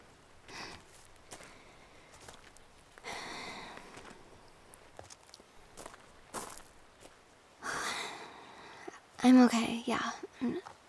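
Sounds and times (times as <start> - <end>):
footsteps on a morning trail: 0.0 - 7.2
hiker breathing heavily on a morning trail: 0.5 - 2.3, 3.0 - 4.4, 7.6 - 9.0
speech: 9.2 - 10.8.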